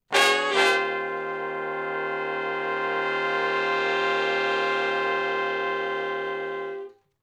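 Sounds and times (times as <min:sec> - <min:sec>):
R&B horn section chords in E-flat: 0:00.0 - 0:07.0.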